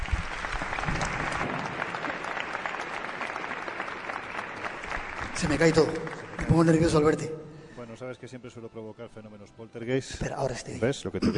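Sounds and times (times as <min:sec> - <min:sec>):
audience applause: 0:00.0 - 0:07.5
speech: 0:05.4 - 0:07.4, 0:08.0 - 0:11.3.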